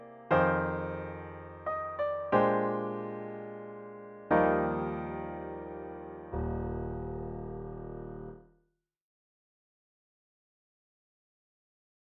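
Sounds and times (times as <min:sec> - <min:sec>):
solo piano: 0:00.0 - 0:08.4.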